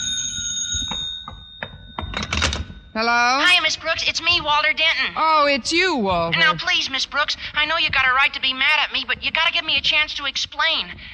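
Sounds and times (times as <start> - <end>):
telephone ringing in an old radio drama: 0.0 - 4.9
speech: 3.0 - 11.1.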